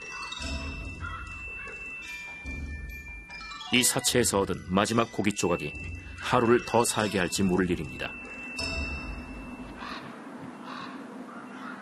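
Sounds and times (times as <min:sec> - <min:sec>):
raven calls: 0:00.1 - 0:01.8, 0:09.7 - 0:11.8
speech: 0:03.7 - 0:08.2.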